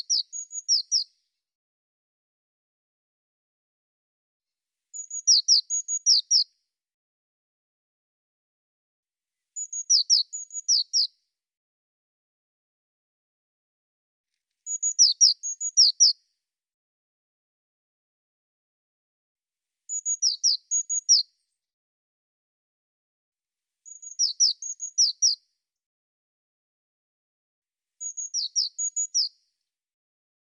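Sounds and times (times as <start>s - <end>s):
Eurasian blue tit thin high whistled notes: 0.0s - 1.2s, 4.9s - 6.5s, 9.6s - 11.2s, 14.6s - 16.2s, 19.9s - 21.4s, 23.8s - 25.4s, 28.0s - 29.5s.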